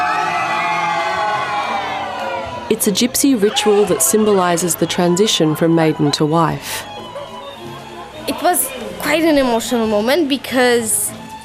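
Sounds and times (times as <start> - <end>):
wedding guests cheering and whooping at a gypsy wedding ritual: 0.0 - 6.4
speech: 2.7 - 6.9, 8.4 - 11.2.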